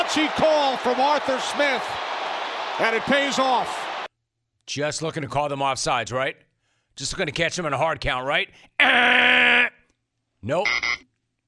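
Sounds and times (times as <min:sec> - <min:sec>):
speech: 0:00.1 - 0:02.1, 0:02.8 - 0:03.8, 0:04.7 - 0:09.8, 0:10.4 - 0:11.0
whiny buzzer: 0:10.7 - 0:11.0.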